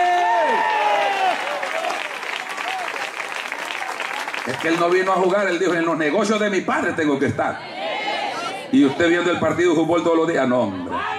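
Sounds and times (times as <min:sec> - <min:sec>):
audience applause: 0:00.0 - 0:05.9
speech: 0:04.6 - 0:07.7, 0:08.7 - 0:11.1.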